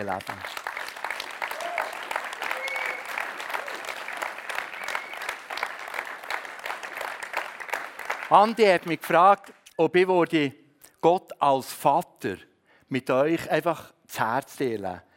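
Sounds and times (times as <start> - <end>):
speech: 0.0 - 0.7, 8.3 - 15.1
audience applauding: 0.0 - 9.2
cheer or whistle: 1.5 - 3.2, 4.7 - 5.4.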